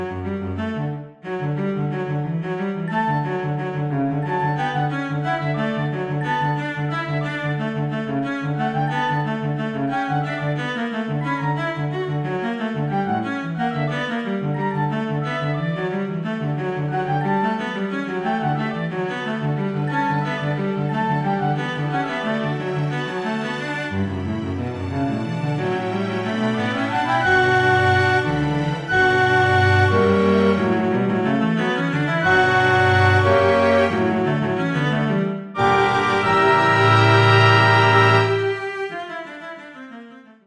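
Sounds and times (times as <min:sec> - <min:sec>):
cello concerto movement: 0:00.0 - 0:39.6.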